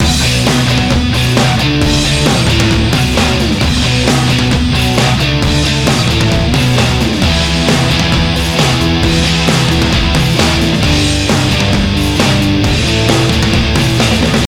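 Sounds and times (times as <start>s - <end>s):
rock music: 0.0s - 14.4s.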